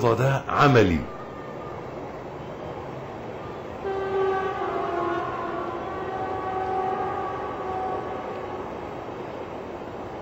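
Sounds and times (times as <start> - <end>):
speech: 0.0 - 1.2
passing train: 0.0 - 10.2
train horn: 3.8 - 9.1.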